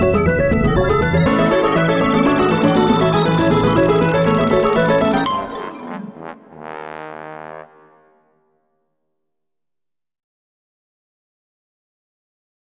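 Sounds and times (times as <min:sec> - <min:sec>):
synth music: 0:00.0 - 0:08.3.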